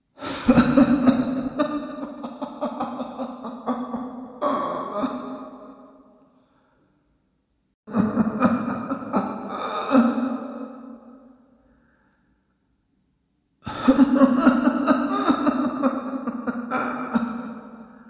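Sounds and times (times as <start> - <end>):
old witch laughing in a dungeon: 0.2 - 5.5, 7.9 - 10.6, 13.7 - 17.6.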